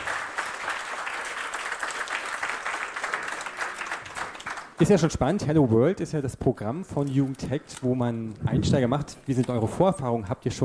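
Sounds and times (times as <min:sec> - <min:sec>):
audience applause: 0:00.0 - 0:04.9
speech: 0:04.8 - 0:10.6.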